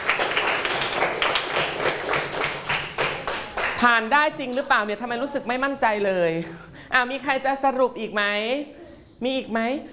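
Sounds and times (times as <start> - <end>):
group of people clapping in a classroom: 0.0 - 4.0
speech: 3.8 - 9.9.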